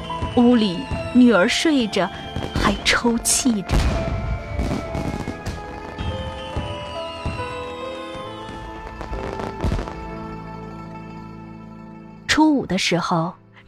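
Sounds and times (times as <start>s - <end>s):
firecrackers outside: 0.0s - 10.6s
speech: 0.4s - 4.1s, 12.7s - 13.4s
fireworks outside: 2.2s - 10.2s.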